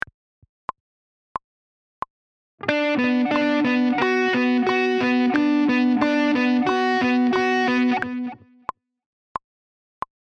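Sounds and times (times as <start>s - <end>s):
click track: 2.6s - 8.4s.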